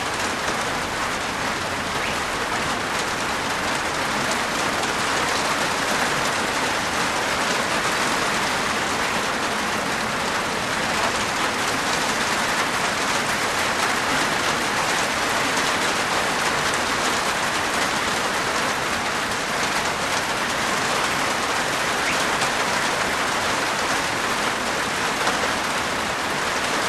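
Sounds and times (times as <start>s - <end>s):
medium heavy rain with large drops on a plastic veranda roof: 0.0s - 26.8s
birds: 1.9s - 2.8s, 22.0s - 22.3s.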